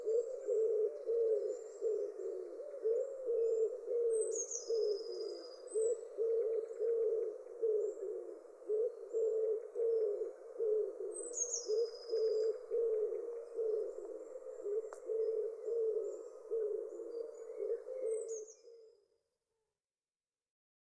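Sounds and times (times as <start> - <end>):
wood pigeon: 0.0 - 19.0.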